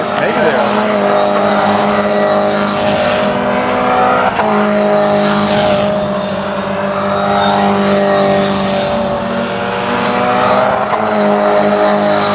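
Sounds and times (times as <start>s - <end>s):
laughter: 0.0s - 2.3s
race cars driving a cool-down lap: 0.0s - 12.3s.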